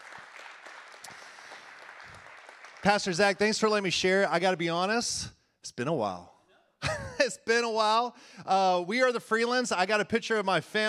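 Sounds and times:
audience applause: 0.0s - 3.4s
speech: 2.8s - 6.3s, 7.3s - 10.8s.

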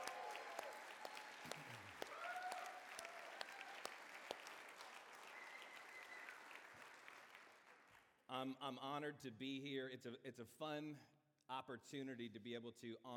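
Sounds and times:
cheers and whoops: 0.0s - 4.4s, 5.2s - 6.7s
large audience applause: 0.0s - 8.0s
speech: 8.3s - 13.1s.

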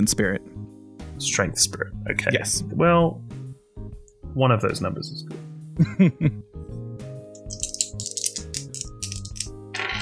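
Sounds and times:
speech: 0.0s - 0.6s, 1.2s - 3.4s, 4.4s - 6.5s
dice rattling and clattering across a surface: 7.4s - 10.0s.

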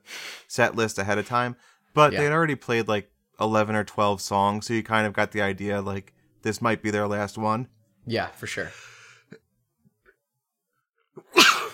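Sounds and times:
speech: 0.5s - 9.4s
sneeze after a long buildup: 11.2s - 11.7s.

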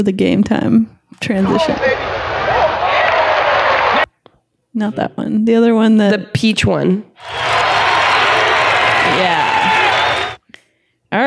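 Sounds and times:
speech: 0.0s - 2.2s, 4.7s - 7.5s
crowd roaring and cheering sound effect: 1.4s - 4.1s, 7.2s - 10.4s.

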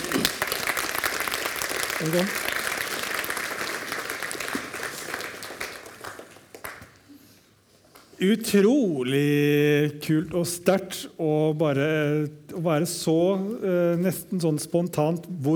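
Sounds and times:
audience applause: 0.0s - 7.0s
speech: 2.0s - 2.5s, 8.2s - 15.5s.

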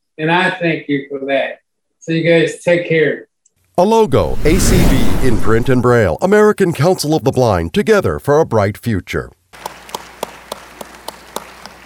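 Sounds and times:
speech: 0.2s - 9.7s
audience hand claps at an American Council of the Blind gathering: 9.6s - 11.8s.

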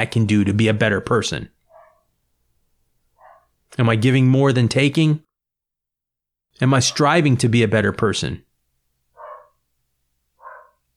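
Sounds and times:
speech: 0.0s - 1.6s, 3.7s - 5.2s, 6.6s - 8.5s
dogs barking: 1.7s - 2.1s, 3.2s - 3.6s, 9.2s - 9.6s, 10.4s - 10.9s.

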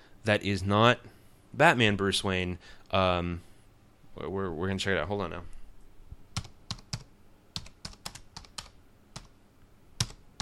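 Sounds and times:
speech: 0.2s - 3.5s, 4.2s - 5.6s
typing on a computer keyboard: 6.4s - 9.3s, 10.0s - 10.4s.

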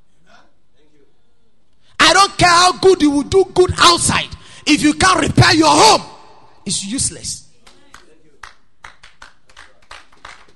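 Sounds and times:
speech: 2.4s - 7.4s
audience clapping: 7.6s - 10.5s.

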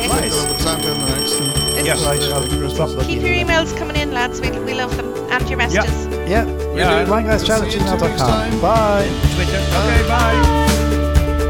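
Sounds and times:
bell ringing: 0.0s - 5.7s
speech: 1.8s - 10.8s.

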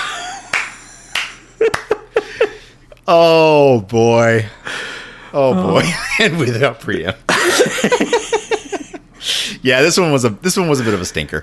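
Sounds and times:
laughter: 0.0s - 2.7s, 7.3s - 9.0s
slow clap: 0.4s - 2.0s
speech: 3.1s - 4.7s, 5.3s - 8.5s, 9.2s - 11.4s.

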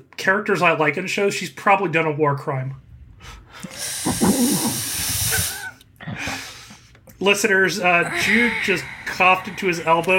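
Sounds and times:
speech: 0.0s - 5.0s, 7.2s - 10.1s
person hissing through the teeth: 3.6s - 6.6s, 8.0s - 10.1s.

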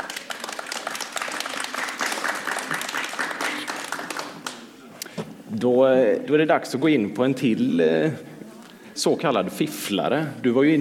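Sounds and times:
audience applause: 0.0s - 4.7s
speech: 5.5s - 8.3s, 9.0s - 10.7s.

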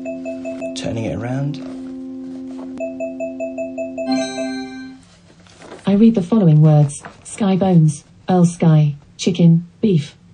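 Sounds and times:
speech: 0.8s - 1.8s, 6.0s - 10.2s
device beeps: 2.8s - 5.0s.

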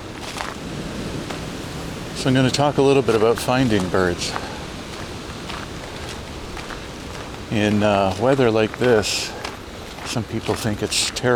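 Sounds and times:
bursts of wind: 0.0s - 11.3s
speech: 2.2s - 4.5s, 7.5s - 9.4s, 10.1s - 11.3s.

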